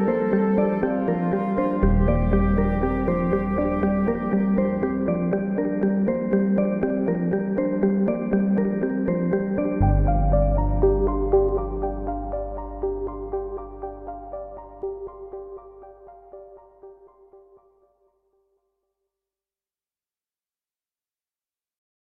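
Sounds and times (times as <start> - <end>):
promotional video background music: 0.0 - 17.6.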